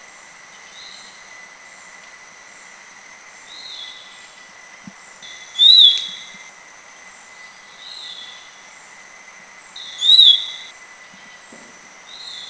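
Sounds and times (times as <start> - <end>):
Black-capped babbler whistled notes in southern Thailand: 5.3 - 6.3, 9.8 - 10.7.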